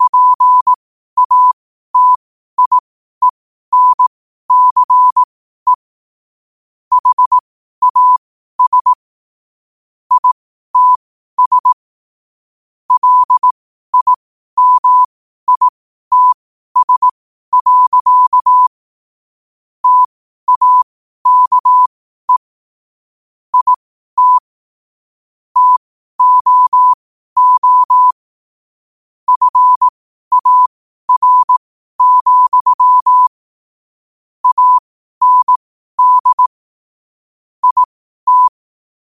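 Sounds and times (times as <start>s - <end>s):
morse code at 5 wpm: 0.0s - 5.9s, 6.9s - 9.0s, 10.1s - 11.8s, 13.0s - 18.7s, 19.8s - 22.5s, 23.5s - 24.5s, 25.6s - 28.2s, 29.3s - 33.4s, 34.4s - 36.6s, 37.6s - 38.6s.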